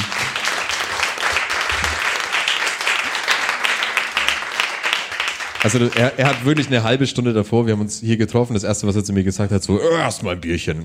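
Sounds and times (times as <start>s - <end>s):
audience applause: 0.0s - 7.0s
speech: 5.6s - 10.8s.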